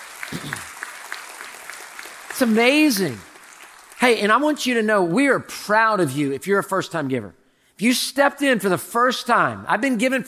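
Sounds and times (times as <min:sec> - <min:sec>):
audience applause: 0:00.0 - 0:04.5
speech: 0:00.3 - 0:00.7, 0:02.4 - 0:03.3, 0:04.0 - 0:10.2.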